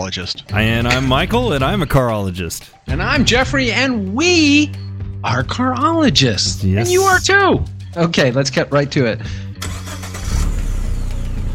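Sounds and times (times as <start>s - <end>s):
speech: 0.0s - 9.5s
Toyota Camry hybrid engine starting: 9.6s - 11.5s.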